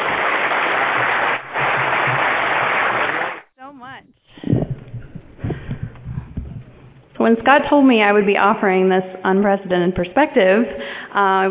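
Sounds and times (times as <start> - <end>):
conference audience applause welcoming a speaker: 0.0 - 3.5
speech: 7.2 - 11.4.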